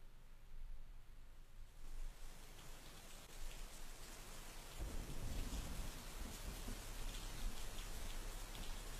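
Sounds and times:
heavy winter rain at night: 0:01.7 - 0:08.9.

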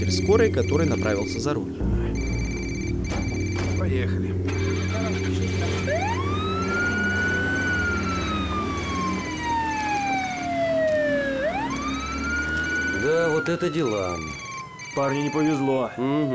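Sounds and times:
speech: 0:00.0 - 0:02.2, 0:03.8 - 0:04.6, 0:13.0 - 0:14.4, 0:15.0 - 0:16.3
police car siren wailing: 0:00.0 - 0:16.3.

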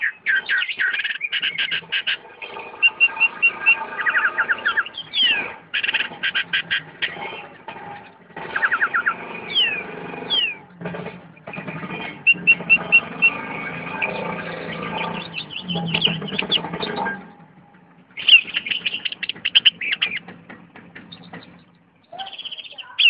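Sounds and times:
Oriental magpie-robin singing sharp high chirps and trills: 0:00.0 - 0:23.0.

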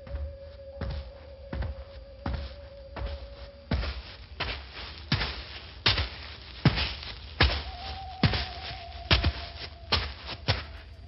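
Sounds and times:
human footsteps approaching from behind: 0:00.0 - 0:11.0
low hum: 0:00.0 - 0:11.0.

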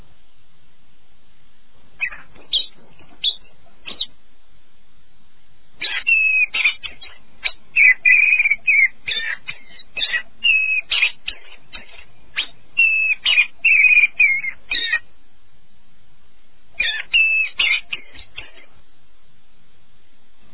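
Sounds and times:
canary singing a high warbling trill in the early morning: 0:02.0 - 0:04.1, 0:05.8 - 0:15.1, 0:16.8 - 0:18.7.

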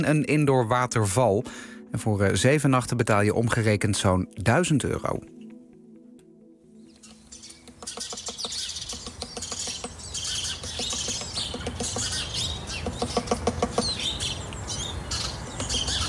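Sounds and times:
speech: 0:00.0 - 0:05.4
great spotted woodpecker hammering on the entrance of a wood-concrete nest box: 0:07.3 - 0:16.0.

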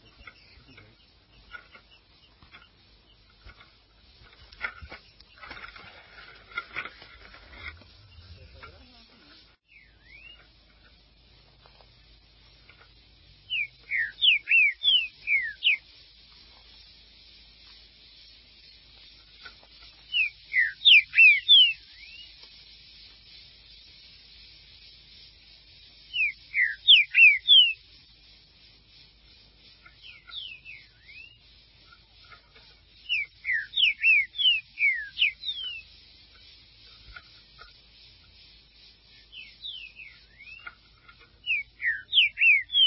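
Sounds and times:
Green-winged saltator whistled song: 0:09.6 - 0:10.5, 0:13.4 - 0:42.8.

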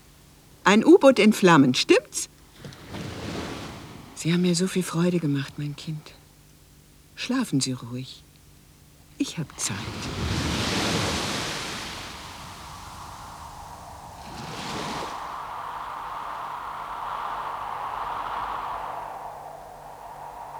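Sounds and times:
speech: 0:00.7 - 0:02.3, 0:04.2 - 0:06.2, 0:07.2 - 0:08.3, 0:09.2 - 0:10.6
sea waves and surf: 0:01.0 - 0:04.9, 0:09.2 - 0:20.5.

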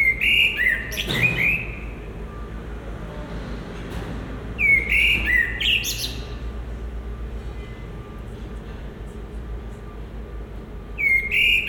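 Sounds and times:
common blackbird song by a residence building in Brussels: 0:00.0 - 0:02.2, 0:04.6 - 0:06.6, 0:10.9 - 0:11.6.

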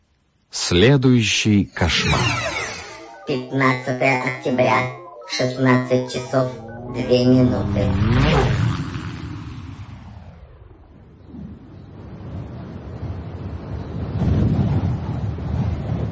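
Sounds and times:
speech: 0:00.7 - 0:02.5, 0:03.3 - 0:08.7
gusts of wind swirling leaves: 0:07.0 - 0:16.1.

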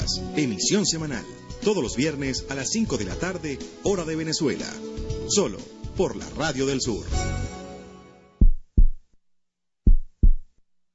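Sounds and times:
speech: 0:00.1 - 0:07.5
heartbeat sound effect: 0:08.4 - 0:09.1, 0:09.8 - 0:10.6.

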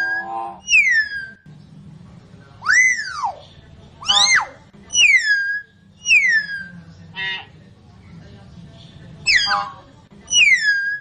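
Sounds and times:
lovebird calls used as a lure: 0:00.0 - 0:01.4, 0:04.0 - 0:07.5, 0:09.3 - 0:11.0.

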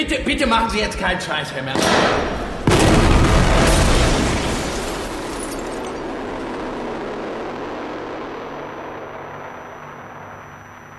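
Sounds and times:
speech: 0:00.0 - 0:02.5
heavy explosion in a shopping centre in Oberhausen: 0:01.7 - 0:10.0.

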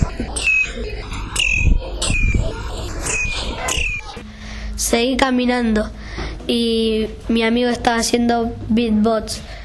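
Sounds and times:
birds squabbling and chirping: 0:00.0 - 0:04.2
speech: 0:04.9 - 0:09.5.

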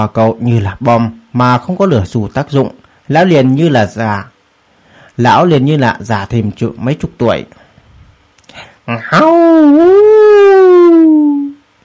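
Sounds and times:
speech: 0:00.0 - 0:04.3, 0:05.2 - 0:07.6, 0:08.6 - 0:10.1
wolf howling: 0:09.1 - 0:11.6.

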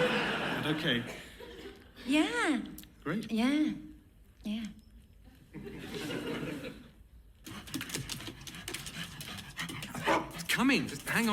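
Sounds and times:
laughter: 0:00.0 - 0:01.9, 0:05.5 - 0:07.0
speech: 0:00.6 - 0:01.3, 0:02.0 - 0:04.8, 0:05.5 - 0:06.8, 0:10.6 - 0:11.3
dog panting: 0:07.4 - 0:11.3.

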